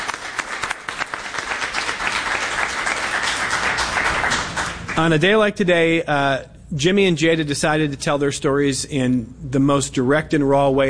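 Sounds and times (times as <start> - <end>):
audience applause: 0.0 - 5.1
speech: 5.0 - 10.8.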